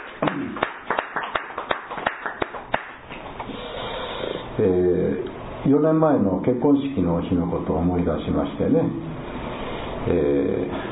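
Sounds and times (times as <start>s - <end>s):
audience applause: 0.0s - 3.0s
speech: 0.2s - 0.8s, 4.6s - 9.2s, 10.0s - 10.8s.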